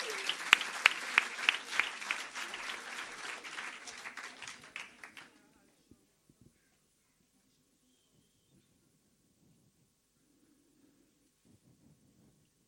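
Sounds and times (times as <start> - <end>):
audience applause: 0.0 - 5.4.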